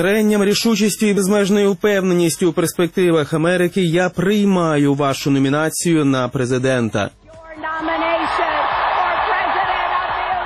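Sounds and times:
speech: 0.0s - 7.9s
people cheering: 7.8s - 10.4s
audience applause: 8.4s - 10.4s.

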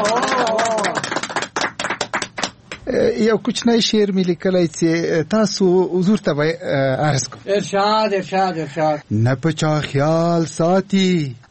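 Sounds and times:
audience clapping to welcome a poet at a poetry gathering: 0.0s - 2.9s
speech: 2.9s - 11.5s.

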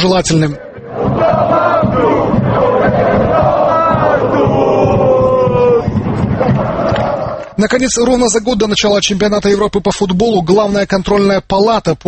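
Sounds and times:
speech: 0.0s - 0.6s, 7.6s - 12.0s
football fans chanting in stadium: 0.0s - 7.6s.

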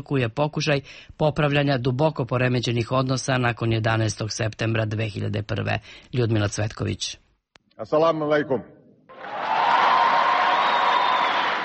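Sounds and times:
speech: 0.0s - 7.2s, 7.8s - 9.4s
amphitheatre audience applause during a speech at Cairo University: 9.1s - 11.6s.

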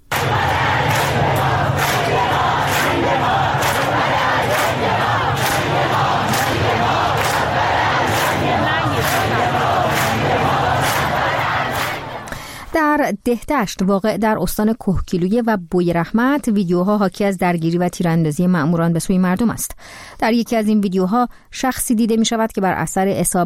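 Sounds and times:
large crowd chanting anti-dictator slogans in the street: 0.0s - 12.4s
speech: 13.1s - 23.4s.

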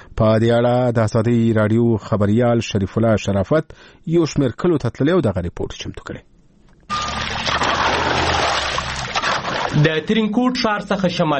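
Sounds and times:
speech: 0.2s - 6.3s, 9.7s - 11.3s
water flowing as a farmer irrigates his fields north-west of Tarinkot: 6.9s - 10.0s.

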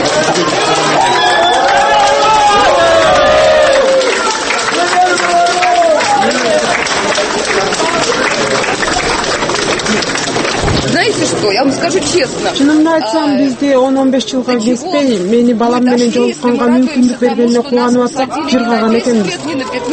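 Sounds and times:
supporters clapping outside a courtroom: 0.0s - 13.8s, 15.6s - 19.9s
speech: 11.8s - 19.9s.

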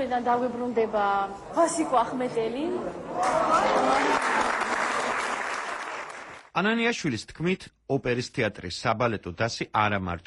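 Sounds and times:
speech: 0.0s - 4.5s, 6.6s - 10.2s
theatre audience applause in an opera house hall: 3.2s - 6.5s.

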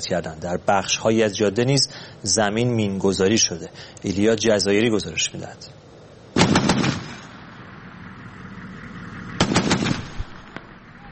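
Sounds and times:
speech: 0.0s - 5.8s
exchange of gunfire: 6.4s - 7.5s, 9.4s - 10.8s.

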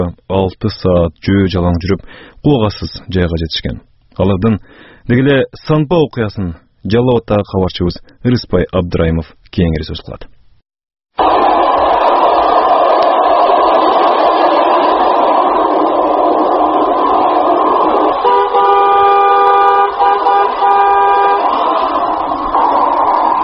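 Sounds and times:
speech: 0.0s - 10.4s
cars on the Osh–Bishkek highway: 11.2s - 23.4s
vehicle horn blaring: 18.2s - 22.2s.

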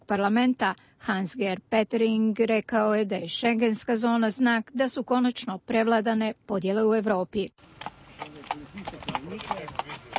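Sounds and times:
speech: 0.1s - 10.0s
hooves of Slovenian police horses patrolling the border with Croatia: 7.6s - 10.1s.

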